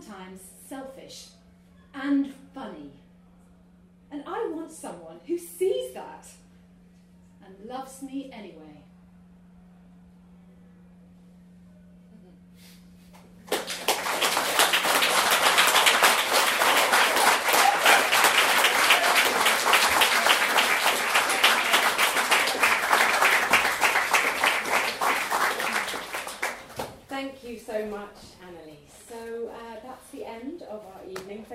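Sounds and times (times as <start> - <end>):
speech: 0.1 - 3.0, 4.1 - 6.4, 7.5 - 8.8
audience applause and cheering: 13.5 - 26.8.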